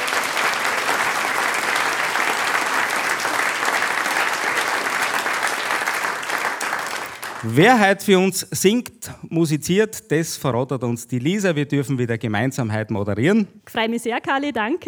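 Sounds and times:
audience applauding: 0.0s - 8.8s
speech: 7.4s - 14.8s.

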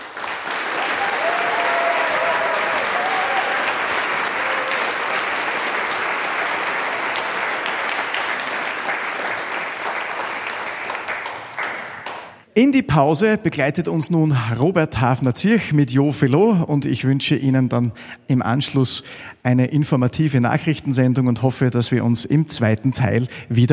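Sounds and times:
audience applause: 0.0s - 12.4s
speech: 12.6s - 23.7s.

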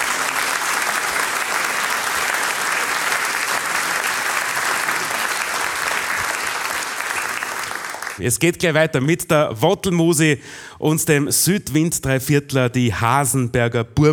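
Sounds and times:
audience applause: 0.0s - 8.2s
speech: 8.2s - 14.1s.

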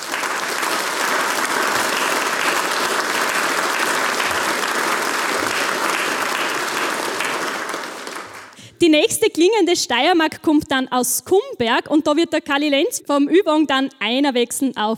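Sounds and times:
audience applause: 0.0s - 8.6s
speech: 8.8s - 14.9s.

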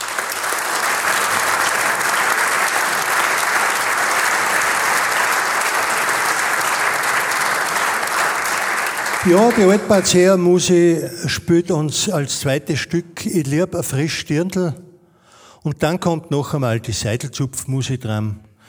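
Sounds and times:
audience applause: 0.0s - 11.4s
speech: 9.2s - 14.8s, 15.6s - 18.5s.

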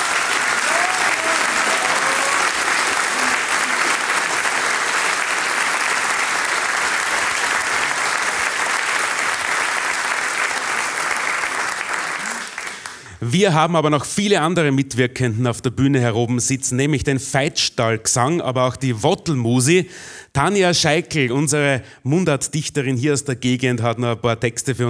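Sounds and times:
audience applause: 0.0s - 13.2s
speech: 13.3s - 24.8s.

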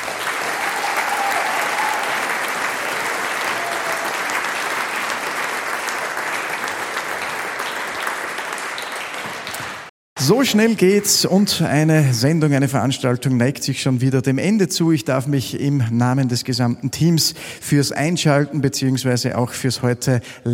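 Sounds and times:
audience applause: 0.0s - 9.9s
speech: 10.3s - 20.5s.

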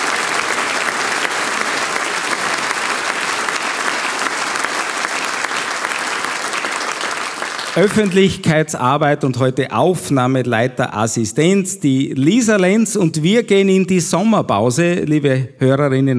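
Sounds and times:
audience applause: 0.0s - 8.6s
speech: 7.8s - 16.1s.

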